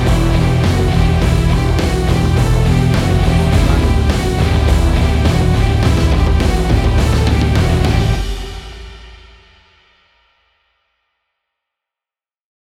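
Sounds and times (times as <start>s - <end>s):
big epic heavy metal action music: 0.0s - 9.3s.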